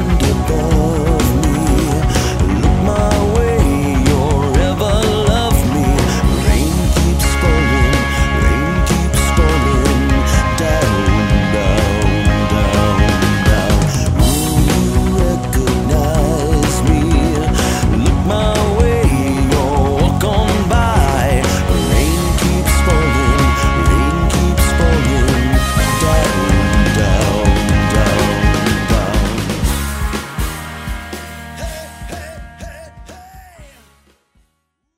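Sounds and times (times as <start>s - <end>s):
cover band playing: 0.0s - 34.2s.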